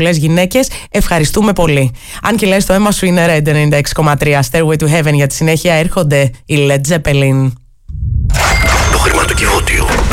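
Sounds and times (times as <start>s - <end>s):
speech: 0.0s - 8.6s
radio contest sound effect of a safe being opened: 8.0s - 9.5s.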